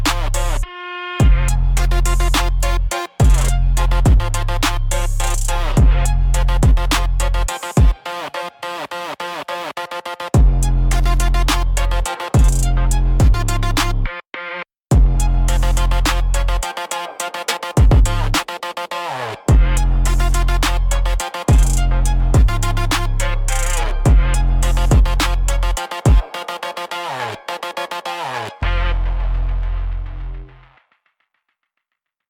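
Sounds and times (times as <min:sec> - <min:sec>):
instrumental pulse: 0:01.2 - 0:08.0, 0:10.4 - 0:14.0, 0:14.9 - 0:18.8, 0:19.5 - 0:30.8.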